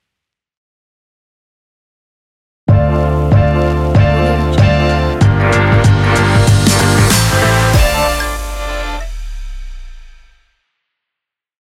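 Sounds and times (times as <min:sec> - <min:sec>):
urban hip hop logo jingle: 0:02.7 - 0:10.4.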